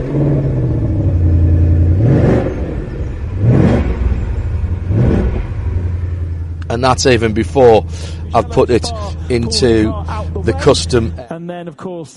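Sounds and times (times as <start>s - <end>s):
5-litre V8 car engine idling and revving: 0.0s - 11.2s
speech: 6.8s - 12.1s.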